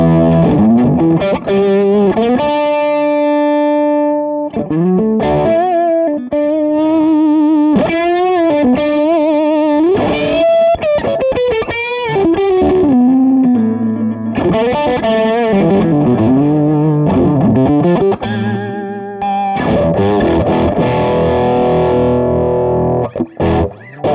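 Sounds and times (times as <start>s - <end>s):
electric guitar with humbucker pickup and more gain: 0.0s - 24.1s.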